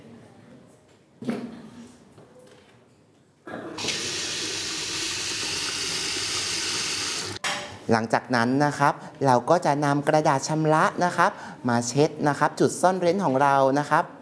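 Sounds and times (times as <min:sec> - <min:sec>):
bidet spray hose spraying water: 0:03.8 - 0:07.4
speech: 0:07.9 - 0:14.2.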